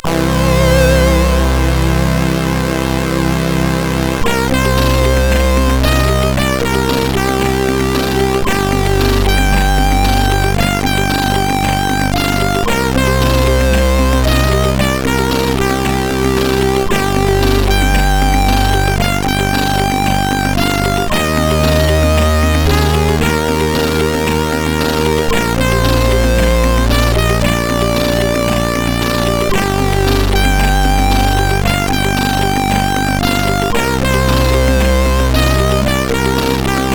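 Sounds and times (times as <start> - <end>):
loader tune on CSG8580R5: 0.0 - 36.9.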